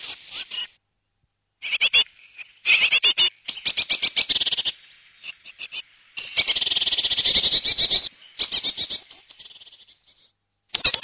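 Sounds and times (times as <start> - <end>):
great tit churring: 1.6 - 10.2.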